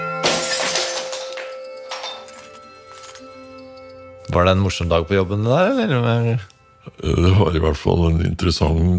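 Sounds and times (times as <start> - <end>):
glass patio doors and panes being smashed: 0.2 - 3.2
speech: 4.4 - 8.9.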